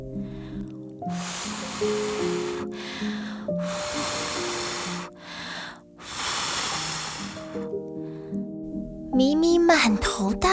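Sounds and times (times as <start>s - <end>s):
soft tonal music: 0.0s - 10.5s
blowing hard into a balloon: 1.0s - 7.8s
speech: 9.7s - 10.5s.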